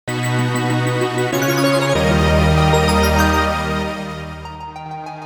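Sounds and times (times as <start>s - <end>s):
elemental stone acquired jingle: 0.0s - 4.6s.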